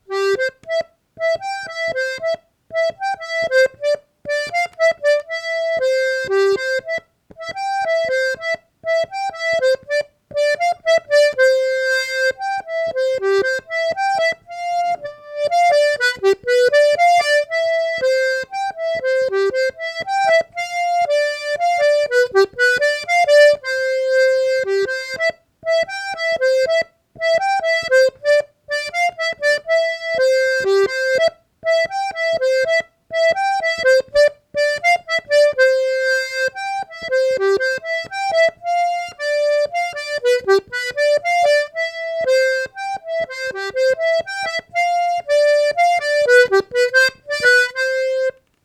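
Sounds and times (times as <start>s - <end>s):
mazurka: 0.1s - 48.4s.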